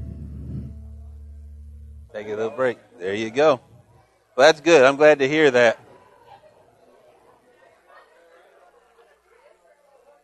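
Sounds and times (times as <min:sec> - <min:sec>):
crowd chatter: 0:00.7 - 0:10.2
speech: 0:02.2 - 0:03.7, 0:04.4 - 0:05.8.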